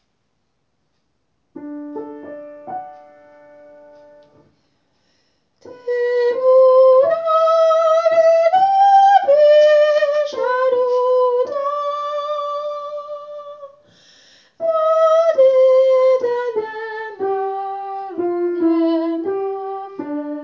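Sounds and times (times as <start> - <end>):
soprano voice: 5.6 - 13.8, 14.6 - 20.4.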